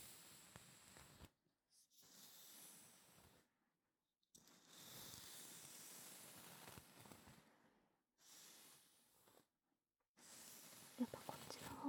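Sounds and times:
combing a wig: 4.5s - 7.4s, 10.2s - 11.8s.

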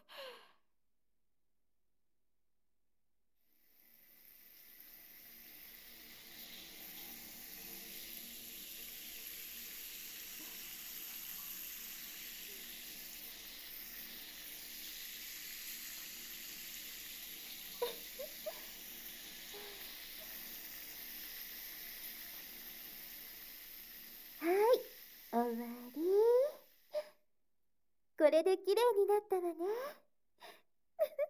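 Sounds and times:
shower water rinsing off soap foam: 3.5s - 26.9s
speech: 28.4s - 30.0s.

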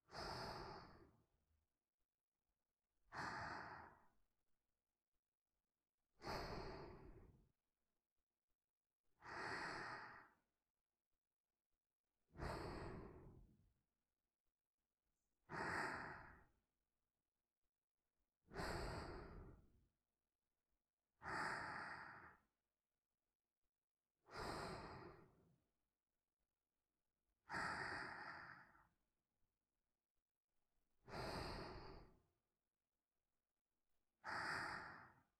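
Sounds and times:
person breathing in sleep: 0.0s - 1.3s, 3.1s - 4.2s, 6.1s - 7.4s, 9.2s - 10.5s, 12.3s - 13.6s, 15.4s - 16.6s, 18.5s - 19.8s, 21.2s - 22.5s, 24.2s - 25.5s, 27.4s - 29.0s, 31.0s - 32.3s, 34.2s - 35.3s.

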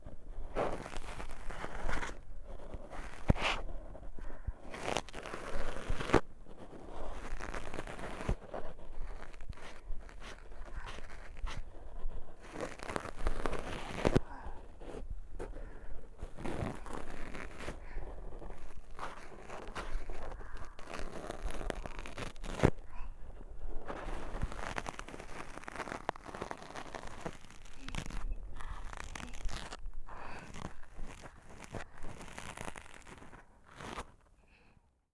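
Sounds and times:
ear cleaning sounds in the left ear: 0.4s - 34.2s
breathing in the left ear: 4.1s - 4.7s, 13.8s - 20.7s, 30.1s - 30.9s, 34.4s - 34.9s.

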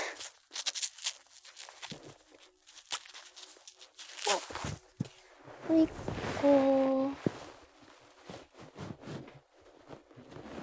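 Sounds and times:
Velcro strap of a wristband being fastened: 0.1s - 4.7s
speech: 5.7s - 6.8s.

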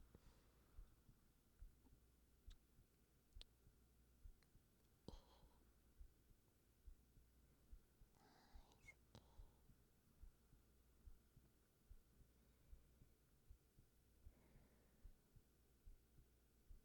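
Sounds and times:
heartbeat: 0.7s - 2.6s, 3.4s - 8.2s, 9.2s - 14.4s, 15.0s - 16.8s
sleeping breathing: 8.2s - 9.6s.

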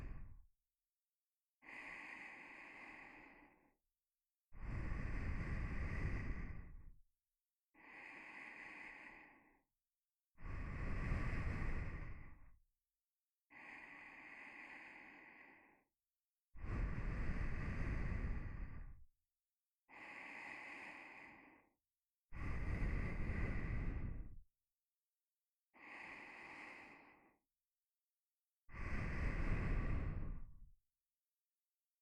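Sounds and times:
nose breathing while lying beside: 1.6s - 3.6s, 4.6s - 6.9s, 7.8s - 9.5s, 10.4s - 12.4s, 13.5s - 15.8s, 16.6s - 19.0s, 19.9s - 21.7s, 22.4s - 24.4s, 25.8s - 27.4s, 28.7s - 30.6s.

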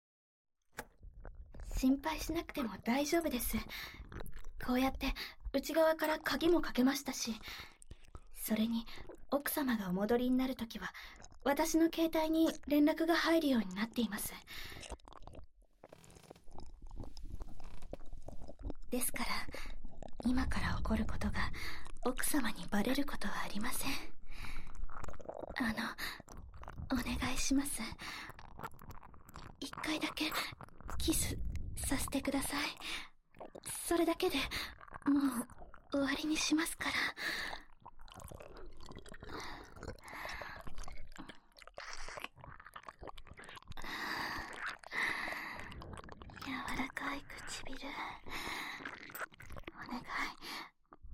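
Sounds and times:
nipple licking: 0.8s - 51.1s
oral sex sounds: 0.8s - 51.1s
ear licking: 3.3s - 5.5s, 13.7s - 22.7s, 24.6s - 27.2s, 27.8s - 51.0s.

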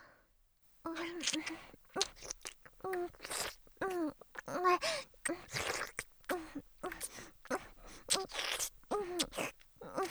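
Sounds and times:
thorough ear cleaning: 0.9s - 10.1s.

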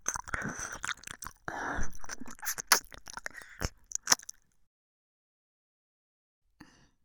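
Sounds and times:
ear licking: 0.0s - 4.4s.

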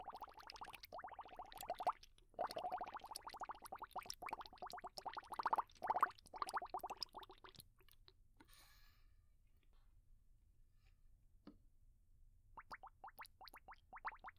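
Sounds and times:
bubbles: 0.0s - 7.7s, 12.6s - 14.3s.

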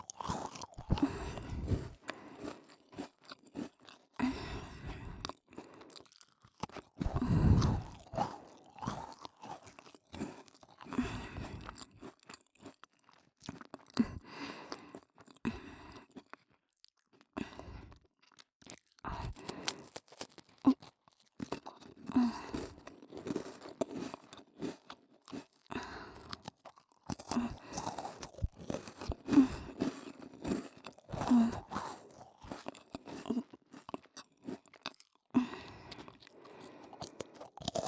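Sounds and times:
ASMR cookie sounds: 0.0s - 4.8s, 6.6s - 11.4s, 19.0s - 20.9s, 21.7s - 37.8s.

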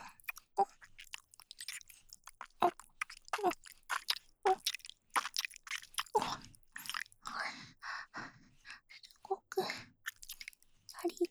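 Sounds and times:
ear licking in the right ear: 0.1s - 7.2s, 10.1s - 11.2s.

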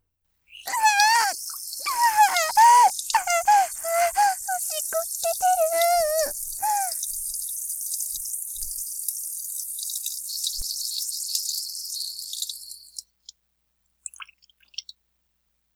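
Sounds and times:
three-person relay loop of urination: 0.7s - 7.0s.

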